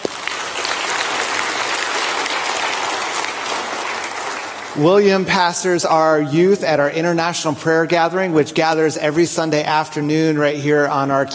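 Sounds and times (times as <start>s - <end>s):
roomful of people clapping to welcome a speaker: 0.0s - 5.5s
speech: 4.8s - 11.3s.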